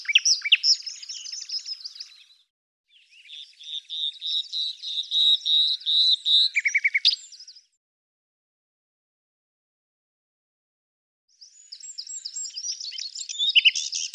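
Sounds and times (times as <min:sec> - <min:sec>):
bird singing rapid chirps, buzzy trills and whistled notes: 0:00.0 - 0:07.8, 0:11.4 - 0:14.1.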